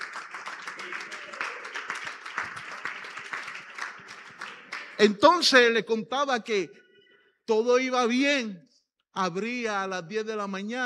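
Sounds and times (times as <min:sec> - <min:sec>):
loud applause: 0:00.0 - 0:05.6
speech: 0:05.0 - 0:06.8, 0:07.5 - 0:10.8.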